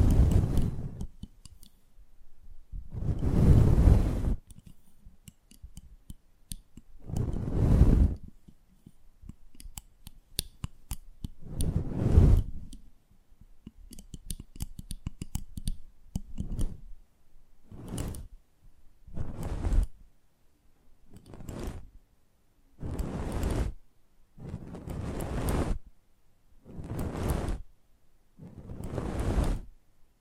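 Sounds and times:
heavy rumbling rubbing on a microphone: 0.0s - 1.2s, 2.9s - 5.0s, 7.0s - 8.3s, 11.4s - 12.7s, 16.4s - 16.9s, 17.7s - 18.4s, 19.1s - 20.0s, 21.1s - 21.9s, 22.8s - 23.8s, 24.4s - 25.8s, 26.6s - 27.7s, 28.4s - 29.7s.

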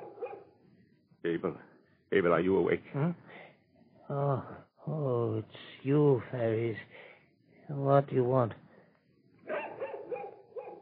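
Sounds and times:
dog barking excitedly: 0.0s - 0.5s, 9.5s - 10.8s
speech: 1.2s - 3.4s, 4.1s - 7.1s, 7.7s - 8.6s.

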